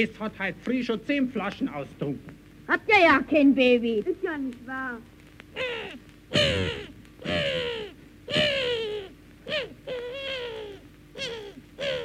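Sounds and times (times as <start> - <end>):
speech: 0.0 - 7.7
seagulls screeching: 5.6 - 12.0.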